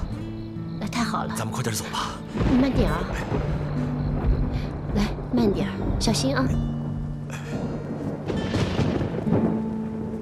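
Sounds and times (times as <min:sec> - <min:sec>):
speech: 0:01.1 - 0:03.9, 0:05.0 - 0:06.7
rolling thunder: 0:02.4 - 0:10.2.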